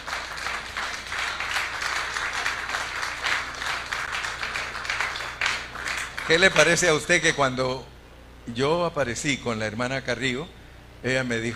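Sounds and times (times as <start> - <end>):
audience clapping hands: 0.0 - 7.0
speech: 6.3 - 7.9, 8.5 - 11.5.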